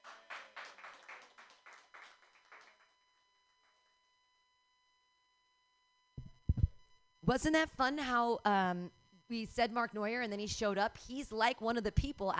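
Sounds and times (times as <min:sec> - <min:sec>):
audience clapping: 0:00.0 - 0:03.0
speech: 0:07.2 - 0:12.3.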